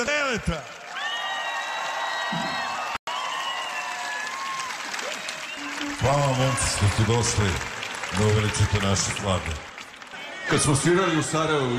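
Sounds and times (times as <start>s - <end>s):
speech: 0.0s - 0.8s, 2.3s - 2.5s, 6.0s - 9.7s, 10.5s - 11.7s
concert audience clapping for band members: 0.0s - 10.9s
concert audience whoops and calls: 0.9s - 7.0s.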